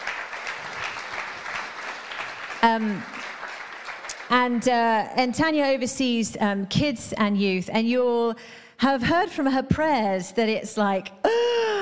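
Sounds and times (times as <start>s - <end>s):
audience clapping: 0.0s - 4.9s
speech: 2.6s - 3.2s, 4.3s - 11.4s.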